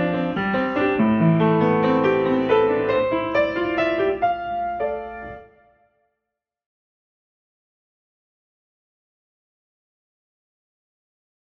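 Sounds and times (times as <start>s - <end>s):
piano in seven four: 0.0s - 6.1s.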